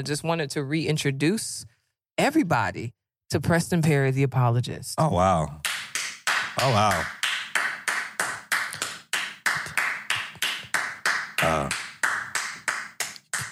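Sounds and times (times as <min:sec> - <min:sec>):
speech: 0:00.0 - 0:05.7, 0:06.6 - 0:07.2, 0:11.4 - 0:11.8
people clapping in a steady rhythm: 0:05.6 - 0:13.5.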